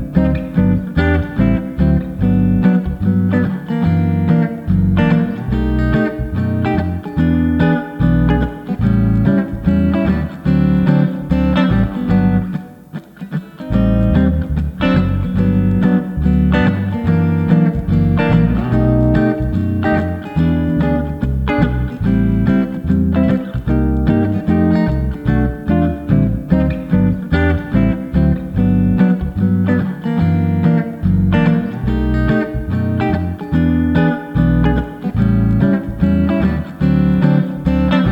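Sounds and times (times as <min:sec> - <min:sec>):
backing track in G in first position: 0:00.0 - 0:38.1.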